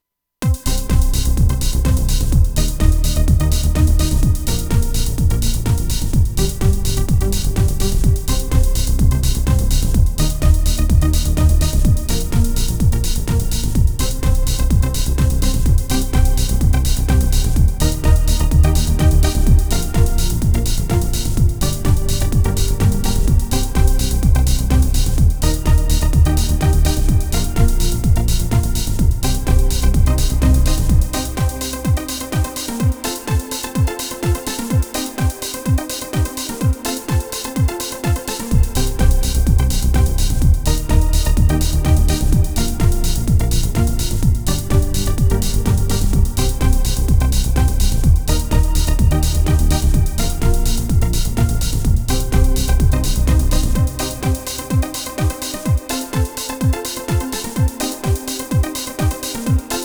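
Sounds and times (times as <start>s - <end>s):
action techno music: 0.4s - 59.8s.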